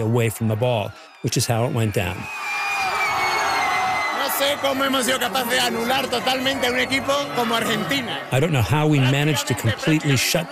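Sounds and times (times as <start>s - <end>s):
speech: 0.0s - 2.6s, 4.4s - 10.5s
large crowd of football fans cheering and shouting: 0.0s - 10.5s
excited whoops: 0.9s - 7.0s
laughter: 4.4s - 10.5s.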